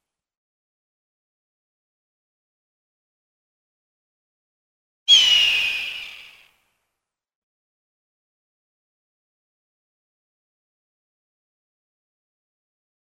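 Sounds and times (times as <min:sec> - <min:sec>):
hawk giving a raspy drawn-out scream: 0:05.1 - 0:06.3.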